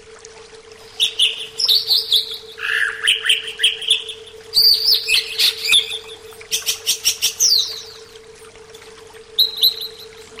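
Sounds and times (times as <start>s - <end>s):
faint constant hum: 0.0s - 10.3s
greater green leafbird whistled song: 0.9s - 8.1s, 9.4s - 10.3s.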